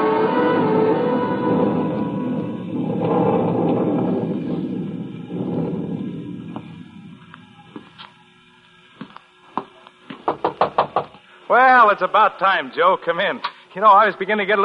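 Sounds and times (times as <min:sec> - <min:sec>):
low rumble: 0:00.2 - 0:08.4
sharp knocks on a door: 0:09.6 - 0:11.1
speech: 0:11.9 - 0:14.6.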